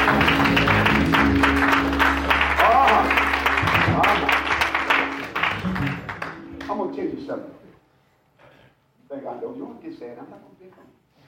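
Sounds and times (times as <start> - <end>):
audience clapping: 0.0 - 6.9.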